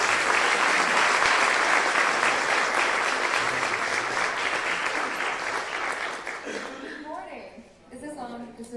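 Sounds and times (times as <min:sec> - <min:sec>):
crowd applauding to welcome a speaker: 0:00.0 - 0:07.1.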